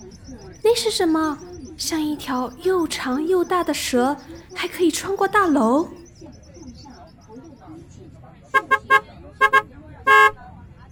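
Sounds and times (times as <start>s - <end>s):
low rumble of city traffic: 0.0s - 10.9s
speech: 0.7s - 6.0s
bus horn honking in city traffic: 8.5s - 10.4s.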